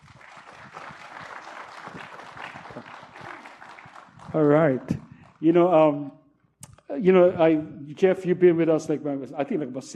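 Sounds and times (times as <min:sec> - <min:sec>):
audience applause welcoming guests onto a stage: 0:00.0 - 0:05.4
speech: 0:04.4 - 0:06.2, 0:07.0 - 0:09.9.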